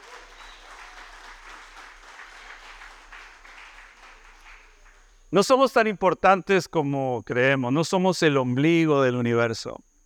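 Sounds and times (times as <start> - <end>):
audience applause: 0.0 - 5.2
speech: 5.3 - 9.9.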